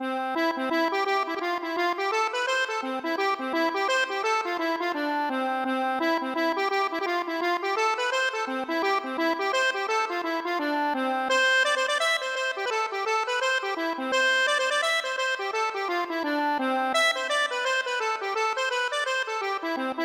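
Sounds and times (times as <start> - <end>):
accordion: 0.0 - 20.0.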